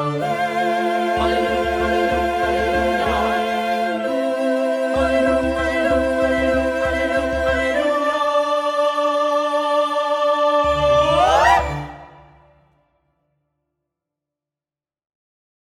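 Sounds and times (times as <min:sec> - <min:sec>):
four-part SATB vocal ensemble: 0:00.0 - 0:12.6.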